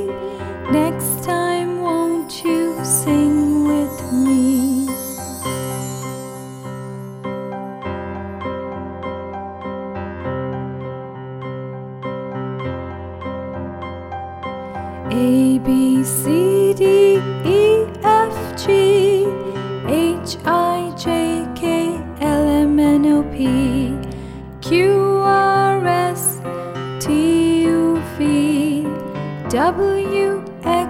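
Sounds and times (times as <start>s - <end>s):
lullaby song: 0.0s - 7.8s, 14.6s - 30.8s.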